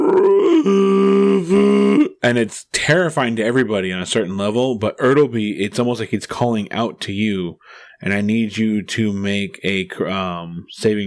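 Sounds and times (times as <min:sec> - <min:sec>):
voice imitating a creature's weird scream: 0:00.0 - 0:02.2
speech: 0:00.6 - 0:01.0, 0:02.2 - 0:11.0.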